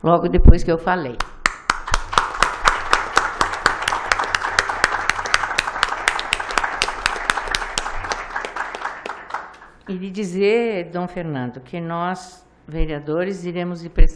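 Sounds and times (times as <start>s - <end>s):
speech: 0.0s - 1.4s, 9.9s - 14.1s
audience applause: 1.4s - 9.8s.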